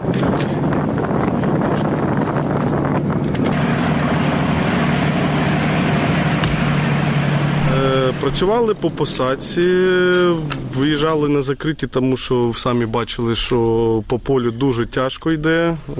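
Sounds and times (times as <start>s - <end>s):
gusty wind noise: 0.0s - 11.0s
tank engine roaring while driving to change position: 0.0s - 11.5s
speech: 8.3s - 15.9s.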